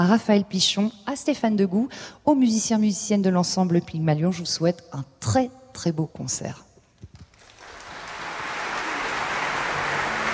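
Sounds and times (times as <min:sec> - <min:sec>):
speech: 0:00.0 - 0:06.7
concert audience applause: 0:07.4 - 0:10.3.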